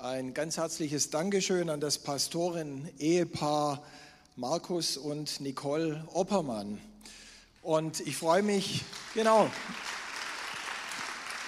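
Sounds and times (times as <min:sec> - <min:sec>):
speech: 0:00.0 - 0:10.0
audience applause: 0:08.6 - 0:11.4.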